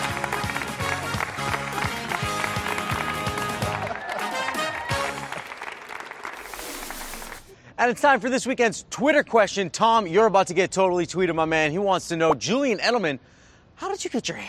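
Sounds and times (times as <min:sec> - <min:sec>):
audience clapping: 0:00.0 - 0:07.5
speech: 0:07.8 - 0:14.4.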